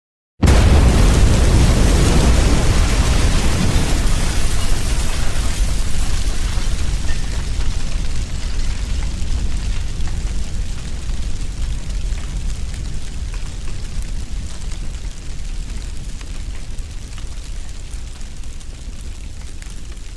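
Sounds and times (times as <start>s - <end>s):
explosion: 0.4s - 14.1s
fire with debris burning: 0.4s - 20.1s.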